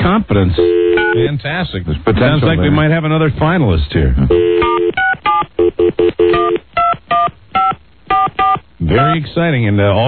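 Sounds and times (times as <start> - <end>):
speech: 0.2 - 4.8, 8.9 - 10.0
telephone number being dialed with touch-tone beeps: 0.6 - 1.2, 4.3 - 9.2.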